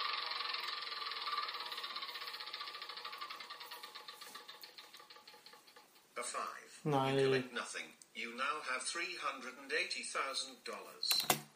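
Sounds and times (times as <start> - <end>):
prize wheel spinning in a video game: 0.0 - 6.5
speech: 6.2 - 11.4.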